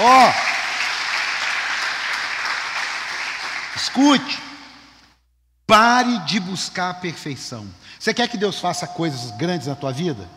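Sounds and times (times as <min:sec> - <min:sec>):
speech: 0:00.0 - 0:00.5, 0:03.8 - 0:04.5, 0:05.7 - 0:10.3
audience applause: 0:00.0 - 0:03.8.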